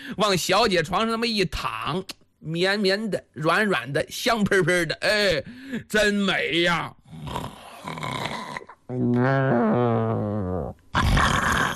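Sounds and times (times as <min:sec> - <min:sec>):
speech: 0:00.1 - 0:07.4, 0:08.9 - 0:11.6
voice imitating loud snoring: 0:07.0 - 0:11.7.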